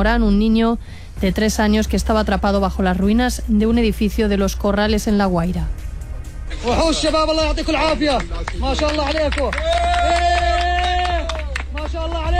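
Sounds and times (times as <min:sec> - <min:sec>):
speech: 0:00.0 - 0:05.8, 0:06.6 - 0:10.3
crowd applauding at a rescue: 0:07.7 - 0:12.3.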